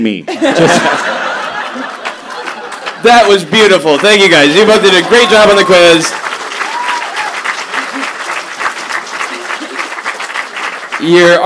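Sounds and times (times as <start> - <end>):
speech: 0.0 - 1.9, 3.0 - 6.2, 11.0 - 11.4
laughter: 0.3 - 6.6, 7.5 - 10.5
audience applause: 0.7 - 11.4.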